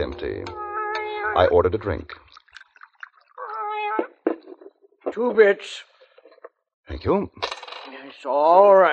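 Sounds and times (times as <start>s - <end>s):
speech: 0.0s - 0.6s, 1.2s - 2.2s, 5.1s - 5.9s, 6.9s - 8.9s
cat meowing on the bar of a saloon: 0.2s - 1.6s, 3.4s - 4.2s.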